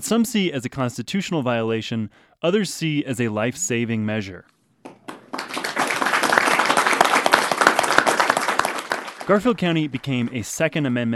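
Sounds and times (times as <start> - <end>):
speech: 0.0 - 4.5, 9.3 - 11.1
crowd applauding at a meeting: 4.9 - 10.4.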